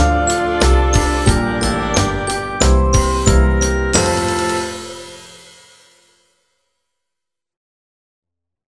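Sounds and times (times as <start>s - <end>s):
Christmas song backing track: 0.0s - 6.2s.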